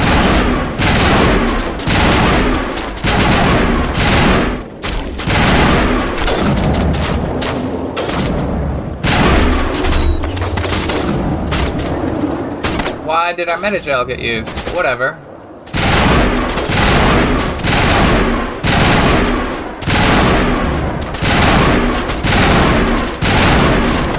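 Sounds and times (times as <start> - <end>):
video game automatic gunfire: 0.0 - 8.3, 15.7 - 24.1
heavy booming impacts: 0.0 - 24.1
speech: 13.3 - 15.3.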